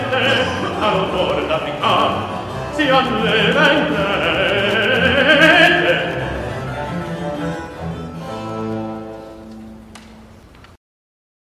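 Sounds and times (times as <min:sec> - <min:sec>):
recitative singing: 0:00.0 - 0:08.0.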